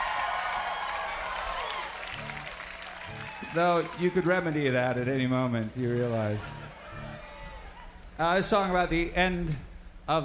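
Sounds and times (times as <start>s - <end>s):
large festival crowd cheering and applauding: 0.0s - 8.1s
speech: 3.5s - 6.6s, 8.2s - 10.2s.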